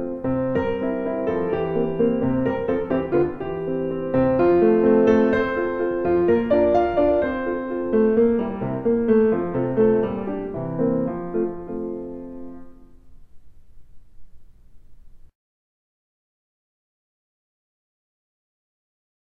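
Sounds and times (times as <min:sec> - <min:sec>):
piano examples: 0:00.0 - 0:15.3.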